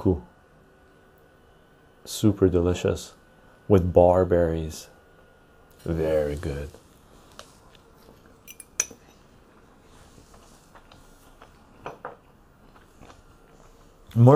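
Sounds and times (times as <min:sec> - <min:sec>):
speech: 0:00.0 - 0:00.3, 0:02.0 - 0:04.9, 0:05.8 - 0:06.8, 0:14.2 - 0:14.3
low hum: 0:00.0 - 0:14.3
cutlery clinking and scraping on plates during a meal: 0:08.5 - 0:09.2.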